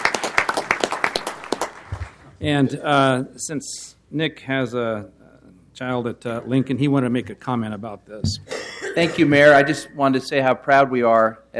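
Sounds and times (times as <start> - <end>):
civic meeting audience applauding a new city commissioner: 0.0 - 2.3
speech: 2.4 - 5.2, 5.8 - 11.5.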